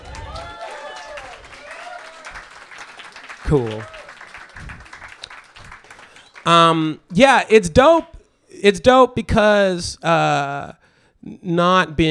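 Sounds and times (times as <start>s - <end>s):
clapping: 0.0s - 6.5s
speech: 3.5s - 4.0s, 6.4s - 12.0s.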